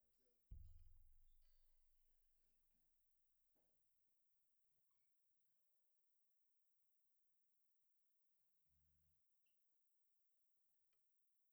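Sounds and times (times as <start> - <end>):
bass drum: 0.5 - 2.1.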